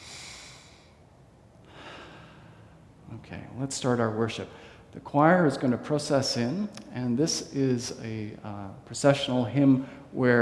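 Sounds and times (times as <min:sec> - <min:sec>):
church congregation taking a deep breath in and out together: 0:00.0 - 0:01.0, 0:01.6 - 0:03.0
speech: 0:03.2 - 0:10.3.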